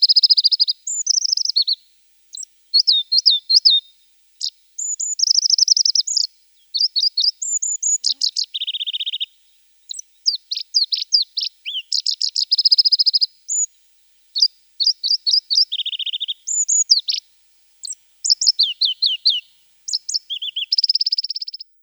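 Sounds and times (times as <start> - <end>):
Pallas's leaf warbler singing: 0.0 - 13.7, 14.4 - 21.7.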